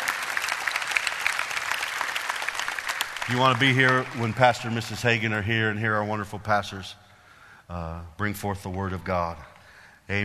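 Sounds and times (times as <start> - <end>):
audience hand clapping: 0.0 - 5.3
speech: 3.3 - 7.0, 7.7 - 9.5, 10.1 - 10.2.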